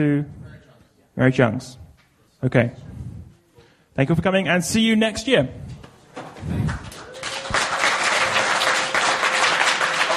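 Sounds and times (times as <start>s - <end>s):
speech: 0.0s - 0.4s, 1.2s - 1.8s, 2.4s - 3.0s, 4.0s - 6.9s
audience applause for the organizers: 6.6s - 10.1s.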